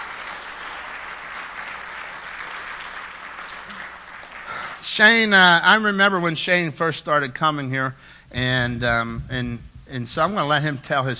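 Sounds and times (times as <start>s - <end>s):
church congregation clapping: 0.0s - 5.5s
speech: 4.9s - 11.1s.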